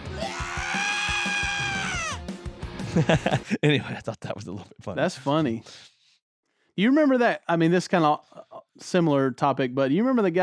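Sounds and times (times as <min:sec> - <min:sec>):
recorded scream set to music: 0:00.0 - 0:02.2
laughter: 0:02.8 - 0:04.2
speech: 0:02.9 - 0:05.9, 0:06.8 - 0:10.4.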